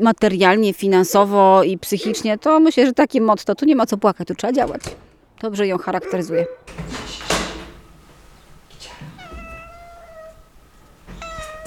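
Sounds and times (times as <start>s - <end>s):
speech: 0.0s - 7.1s
cats meowing: 6.0s - 11.6s
sharp clattering knock: 6.7s - 9.8s, 10.8s - 11.6s.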